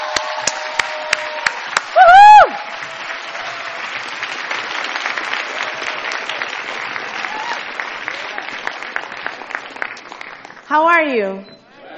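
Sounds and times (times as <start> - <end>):
whoop: 0.0 - 3.8, 7.2 - 7.7
audience applause for a speaker coming on stage: 0.0 - 11.1
speech: 11.0 - 11.5.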